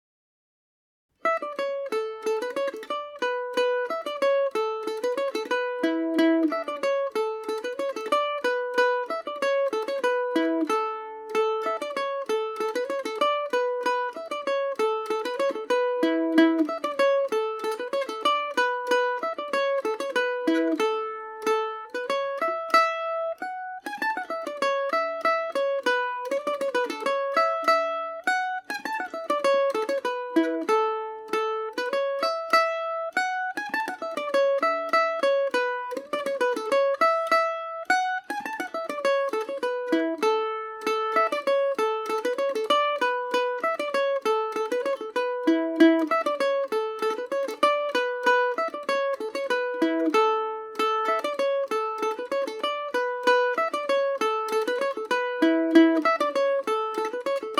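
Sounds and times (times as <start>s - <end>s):
Irish mandolin playing Paris swing in A major: 1.2s - 57.5s.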